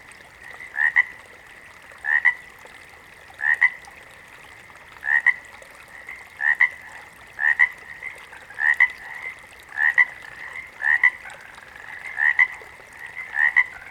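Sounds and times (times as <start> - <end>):
water frog double croaks: 0.6 - 1.2, 2.0 - 2.4, 3.4 - 3.8, 5.0 - 5.4, 6.0 - 13.8.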